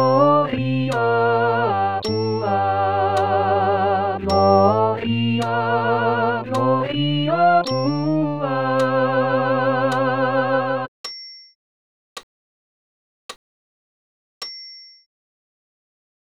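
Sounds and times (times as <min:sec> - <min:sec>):
all voices singing a Sanctus: 0:00.0 - 0:10.9.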